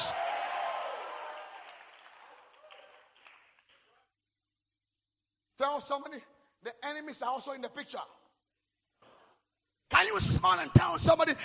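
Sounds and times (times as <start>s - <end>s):
audience clapping and shouting: 0.0s - 4.0s
speech: 5.6s - 8.2s, 10.0s - 11.4s.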